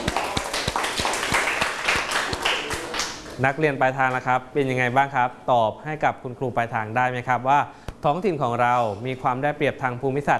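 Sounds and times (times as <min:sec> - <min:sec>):
students clapping for a classmate: 0:00.0 - 0:03.4
speech: 0:03.4 - 0:10.3.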